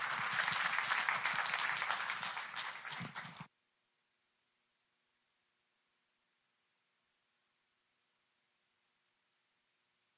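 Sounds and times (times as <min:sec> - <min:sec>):
congregation clapping to welcome a speaker to the front: 0:00.0 - 0:03.5.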